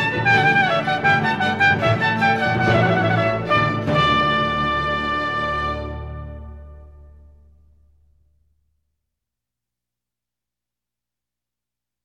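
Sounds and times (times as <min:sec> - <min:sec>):
fanfare: 0:00.0 - 0:07.8.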